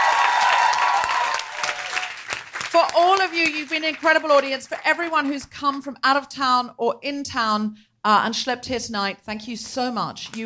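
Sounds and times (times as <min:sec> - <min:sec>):
faint cheering and whistling: 0:00.0 - 0:02.0
crowd applauding: 0:00.0 - 0:05.2
speech: 0:03.0 - 0:10.4.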